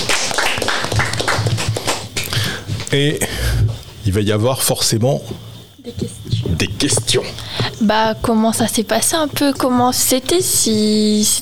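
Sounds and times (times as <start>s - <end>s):
small group clapping at a residents' Christmas get-together: 0.0s - 2.9s
speech: 2.9s - 11.4s.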